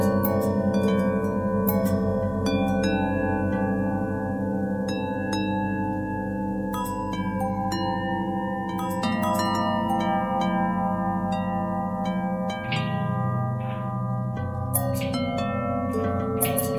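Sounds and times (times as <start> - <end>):
long bell harmonic twist: 0.0 - 16.7.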